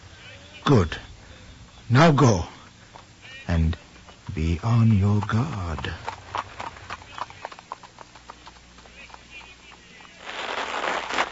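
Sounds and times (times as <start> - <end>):
speech: 0.7 - 1.0, 1.9 - 2.5, 3.5 - 6.1
horses' hooves pulling a carriage at a quick pace: 2.9 - 10.8.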